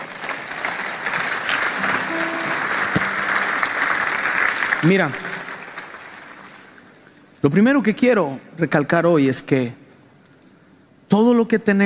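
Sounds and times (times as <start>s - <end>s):
audience applauding: 0.0s - 7.0s
faint tonal note: 1.8s - 4.0s
speech: 4.8s - 5.3s, 7.4s - 9.8s, 11.2s - 11.8s.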